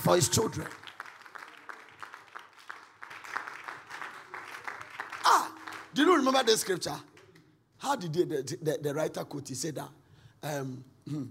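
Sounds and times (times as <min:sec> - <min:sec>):
speech: 0:00.0 - 0:00.8, 0:06.0 - 0:07.1, 0:07.8 - 0:11.3
faint scattered clapping from a church audience: 0:00.6 - 0:07.6.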